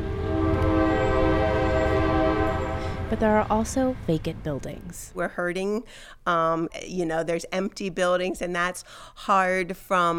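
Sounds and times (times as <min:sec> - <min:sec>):
train horn sounding in a small town in Coshocton, Ohio: 0:00.0 - 0:03.6
low rumbling rail noise of a train running through a small town: 0:00.0 - 0:05.8
speech: 0:03.1 - 0:10.1.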